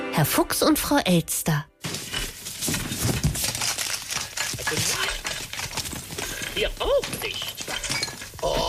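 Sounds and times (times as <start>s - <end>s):
speech: 0.2s - 1.7s, 4.7s - 5.0s, 6.6s - 7.5s
rummaging and rustling through belongings: 1.8s - 8.6s.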